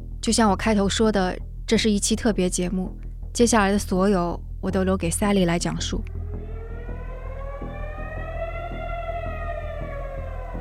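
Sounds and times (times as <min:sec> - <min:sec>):
speech: 0:00.2 - 0:06.2
air raid warning siren: 0:05.8 - 0:10.5.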